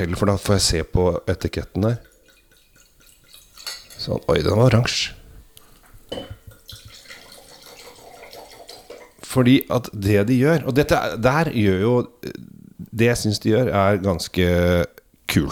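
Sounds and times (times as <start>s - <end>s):
speech: 0.0s - 2.1s, 4.0s - 5.2s, 9.3s - 15.4s
wine being poured into a glass: 1.8s - 5.0s, 6.1s - 9.2s.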